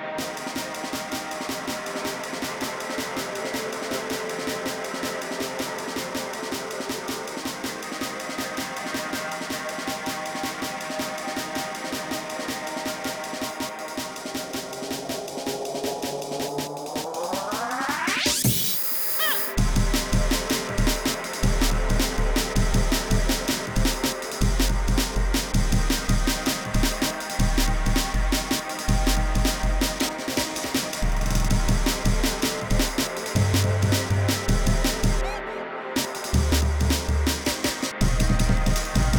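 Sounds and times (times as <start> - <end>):
jungle breakbeat: 0.2 - 39.1.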